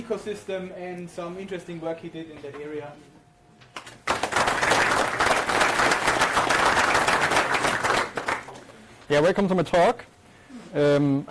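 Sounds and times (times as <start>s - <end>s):
speech: 0.1s - 3.2s, 9.1s - 10.1s, 10.7s - 11.2s
conference audience clapping: 3.7s - 8.7s.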